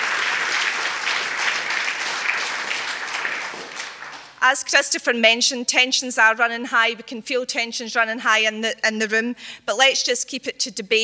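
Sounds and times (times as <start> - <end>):
audience applause: 0.0 - 4.4
speech: 4.4 - 11.0.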